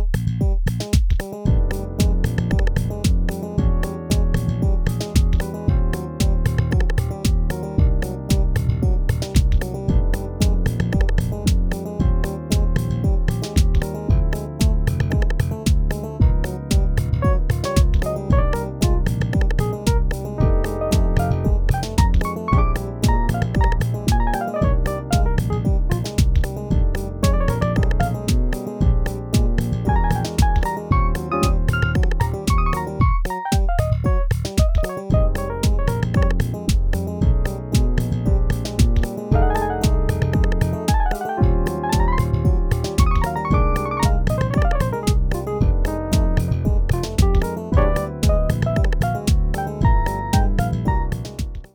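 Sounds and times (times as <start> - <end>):
funk blues music: 0.2 - 51.7.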